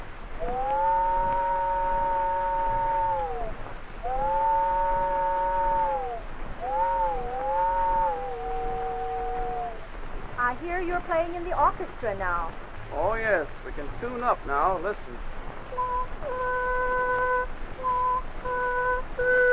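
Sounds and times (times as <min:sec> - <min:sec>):
voice imitating distant train whistle: 0:00.4 - 0:09.9, 0:15.7 - 0:19.5
speech: 0:11.0 - 0:15.3.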